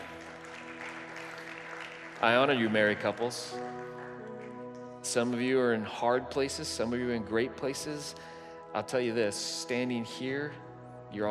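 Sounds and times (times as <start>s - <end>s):
audience clapping: 0.0s - 5.4s
speech: 2.2s - 3.8s, 5.1s - 11.2s.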